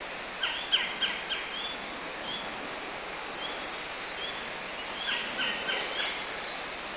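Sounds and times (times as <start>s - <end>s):
bird: 0.4s - 6.7s.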